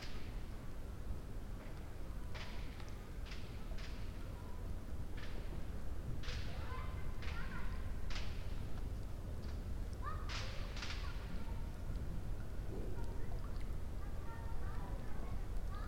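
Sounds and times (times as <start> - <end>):
raindrops: 0.0 - 15.8
child: 4.2 - 4.6, 6.4 - 8.0, 10.0 - 11.9, 12.7 - 15.8.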